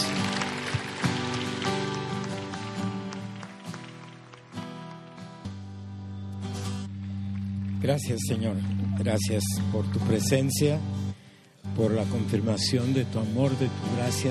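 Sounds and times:
audience applause: 0.0 - 5.5, 6.9 - 9.6
speech: 7.8 - 11.1, 11.8 - 14.2.

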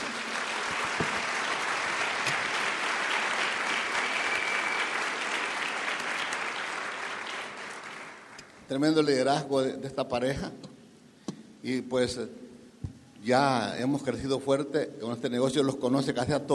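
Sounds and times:
audience applause: 0.0 - 8.4
speech: 8.7 - 10.7, 11.6 - 12.4, 13.2 - 16.5.

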